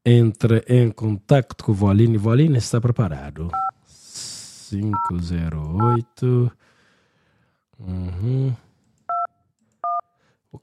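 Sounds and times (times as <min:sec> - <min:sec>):
speech: 0:00.0 - 0:03.8, 0:04.7 - 0:06.7, 0:07.8 - 0:08.7
dual-tone telephone dialing beeps: 0:09.1 - 0:10.1.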